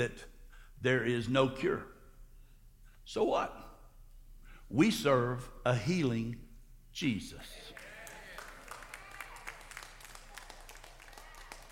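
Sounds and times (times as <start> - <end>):
speech: 0.0 - 1.9, 3.1 - 3.7, 4.7 - 6.4, 7.0 - 7.8
sparse audience applause: 7.5 - 11.7.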